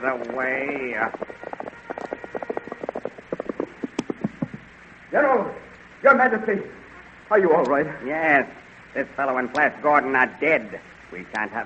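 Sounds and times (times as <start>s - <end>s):
speech: 0.0s - 1.5s, 5.1s - 11.6s
hoofbeats of a squad of soldiers' horses riding up: 0.0s - 4.7s.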